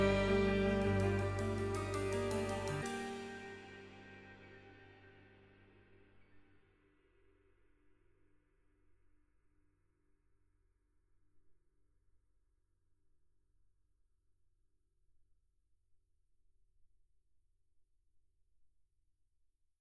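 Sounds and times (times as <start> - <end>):
ride cymbal: 0.0 - 4.5.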